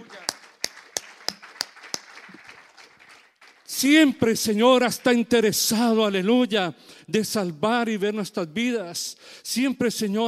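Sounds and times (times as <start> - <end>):
crowd clapping in unison: 0.0 - 5.5
speech: 3.8 - 10.2.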